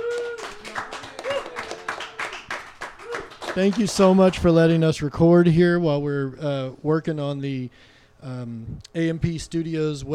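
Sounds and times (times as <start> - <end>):
whoop or whistle: 0.0 - 2.1
audience applause: 0.0 - 4.5
speech: 3.6 - 10.1.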